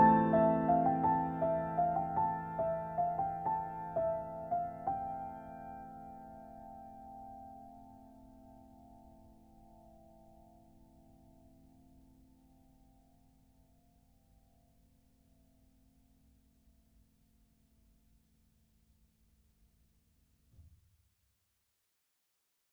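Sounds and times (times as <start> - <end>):
solo piano: 0.0 - 13.2.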